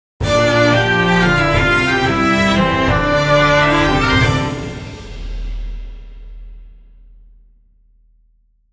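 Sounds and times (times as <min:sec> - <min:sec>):
orchestral sound logo: 0:00.2 - 0:05.5.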